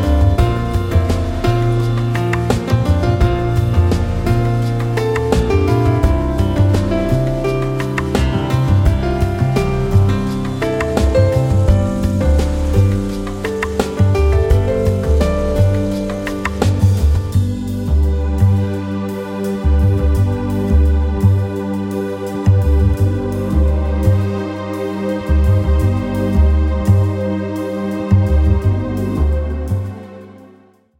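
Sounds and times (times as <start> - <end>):
lounge piano music: 0.0 - 30.1.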